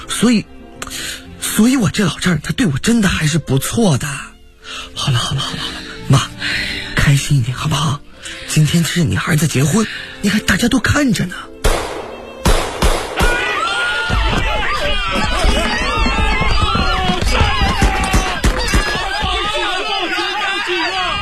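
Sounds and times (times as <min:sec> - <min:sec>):
speech: 0:00.2 - 0:01.0, 0:01.6 - 0:04.3, 0:04.9 - 0:06.3, 0:07.1 - 0:11.5
laughter: 0:05.0 - 0:06.2, 0:13.7 - 0:21.1
gunshots: 0:11.6 - 0:13.5.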